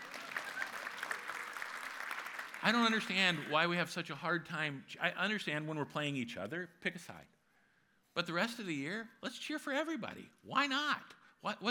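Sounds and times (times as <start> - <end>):
audience clapping: 0.0 - 3.7
speech: 2.6 - 7.4, 8.2 - 11.6.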